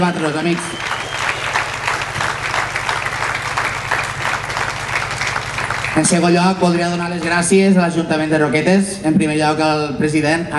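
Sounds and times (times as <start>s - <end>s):
speech: 0.0s - 0.9s, 6.0s - 10.5s
warm applause for an organizing team: 0.0s - 7.6s
low hum: 0.6s - 8.1s.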